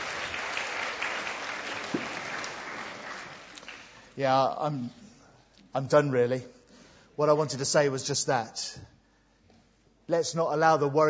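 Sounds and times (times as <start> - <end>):
audience clapping: 0.0 - 4.2
speech: 4.2 - 5.0, 5.8 - 6.6, 7.2 - 8.9, 10.1 - 11.0.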